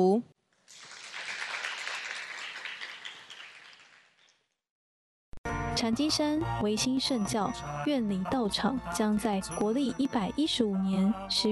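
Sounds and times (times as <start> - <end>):
speech: 0.0 - 0.3, 5.8 - 11.5
audience applause: 0.7 - 4.2.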